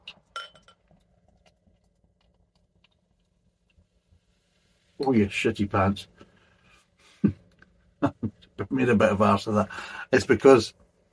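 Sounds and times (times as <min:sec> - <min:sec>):
glass clinking: 0:00.3 - 0:00.9
speech: 0:05.0 - 0:06.2, 0:08.8 - 0:10.8.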